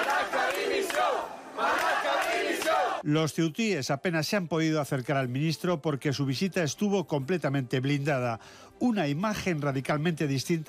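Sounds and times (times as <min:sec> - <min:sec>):
crowd booing: 0:00.0 - 0:03.0
speech: 0:03.0 - 0:10.6.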